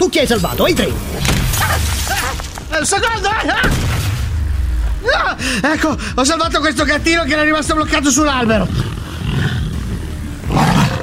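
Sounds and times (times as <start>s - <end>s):
speech: 0.1s - 2.0s, 2.8s - 4.1s, 5.0s - 9.5s
tiger roaring: 8.7s - 11.0s.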